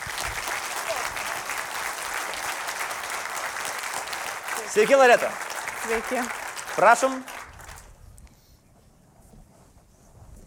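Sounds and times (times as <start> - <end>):
studio audience applause welcoming a guest sociolinguist onto a talk show: 0.0 - 8.0
speech: 4.7 - 7.4.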